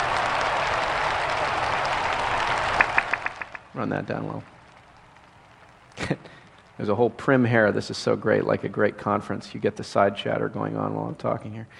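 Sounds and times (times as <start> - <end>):
people clapping: 0.0 - 9.0
speech: 3.8 - 4.6, 6.8 - 11.7.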